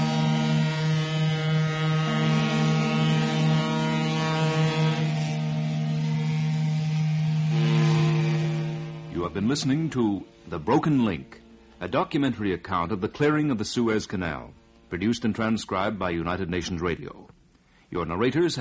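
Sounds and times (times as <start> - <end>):
ship whistles in Port Said and Port Suez harbors: 0.0 - 11.6
speech: 9.3 - 18.5.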